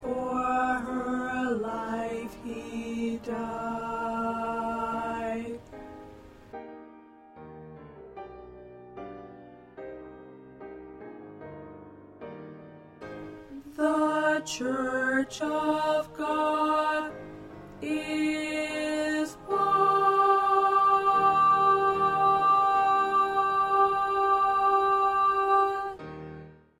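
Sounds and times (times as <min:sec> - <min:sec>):
alto voice: 0:00.0 - 0:05.7, 0:13.4 - 0:26.1.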